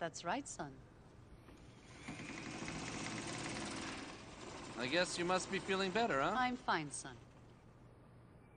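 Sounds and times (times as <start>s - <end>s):
speech: 0.0s - 0.9s, 4.8s - 7.3s
sewing machine running: 1.5s - 7.7s.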